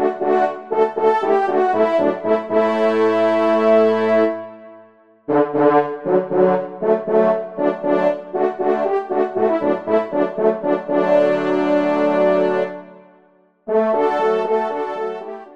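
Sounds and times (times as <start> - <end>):
hunting horn ensemble: 0.0 - 13.0, 13.7 - 15.5.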